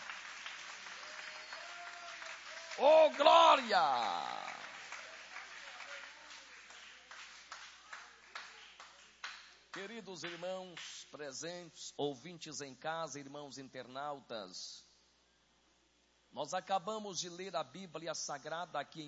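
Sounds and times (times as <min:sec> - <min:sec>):
audience applauding: 0:00.0 - 0:10.4
speech: 0:02.8 - 0:04.4, 0:09.8 - 0:14.9, 0:16.4 - 0:19.0
person calling out loudly: 0:02.8 - 0:04.6.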